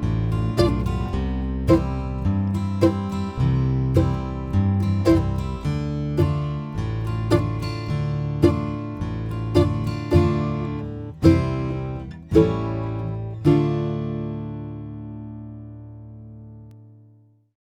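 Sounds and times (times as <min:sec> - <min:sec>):
lonesome slow blues fiddle without melody: 0:00.0 - 0:14.0.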